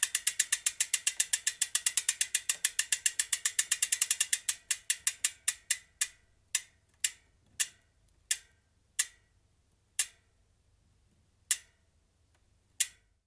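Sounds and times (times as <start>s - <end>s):
tuned bicycle freewheel ticking: 0.0s - 9.2s.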